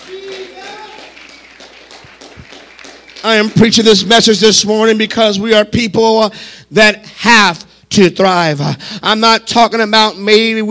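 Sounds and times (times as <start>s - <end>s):
audience clapping hands: 0.0s - 4.5s
speech: 3.2s - 10.7s.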